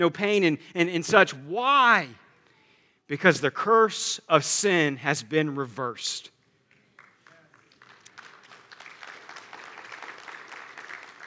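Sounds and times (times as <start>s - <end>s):
speech: 0.0s - 2.2s, 3.1s - 6.3s
audience clapping: 6.7s - 11.2s.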